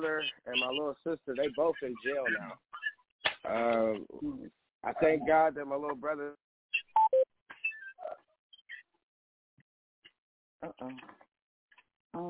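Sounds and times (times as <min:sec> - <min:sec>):
speech: 0:00.0 - 0:02.8, 0:03.4 - 0:06.4, 0:10.6 - 0:11.2
phone line dropping with short electronic beeps: 0:06.8 - 0:08.0.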